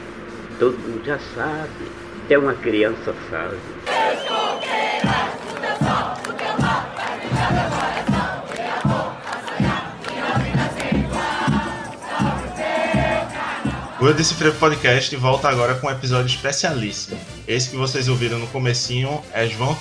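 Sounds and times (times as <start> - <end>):
speech: 0.6 - 4.2, 14.0 - 19.7
crowd shouting: 3.9 - 14.8
music with thumping low beat: 4.8 - 19.7.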